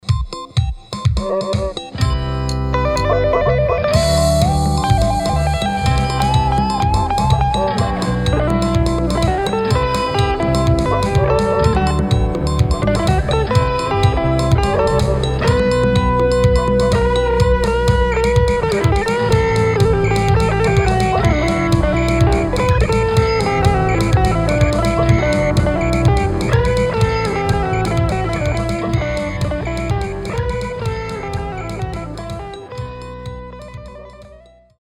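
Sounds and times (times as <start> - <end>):
gypsy samba music: 0.0 - 34.4.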